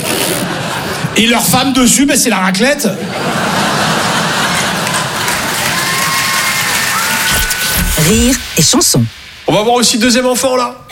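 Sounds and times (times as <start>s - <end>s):
laughter: 0.2s - 1.3s, 2.9s - 6.0s
speech: 1.2s - 3.7s, 8.0s - 10.9s
audience applause and cheering: 3.5s - 9.4s.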